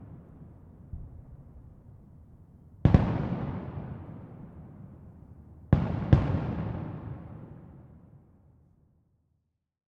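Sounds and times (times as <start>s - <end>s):
fireworks: 0.0s - 2.0s, 2.8s - 8.4s.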